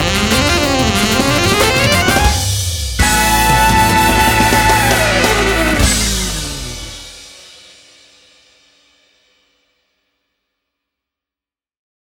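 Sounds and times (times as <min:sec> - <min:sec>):
electric funk trumpet: 0:00.0 - 0:07.1.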